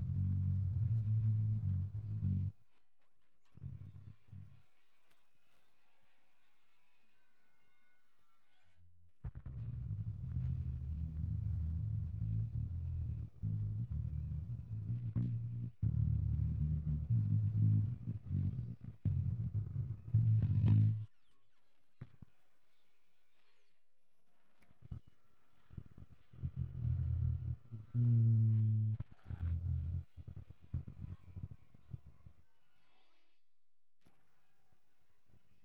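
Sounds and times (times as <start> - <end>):
bass: 0.0 - 2.8, 3.4 - 4.8, 8.6 - 21.2, 24.8 - 32.9.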